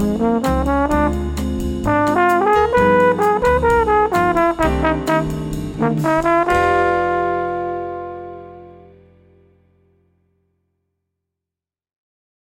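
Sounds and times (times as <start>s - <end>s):
trombone playing a Latin etude: 0.0s - 9.2s.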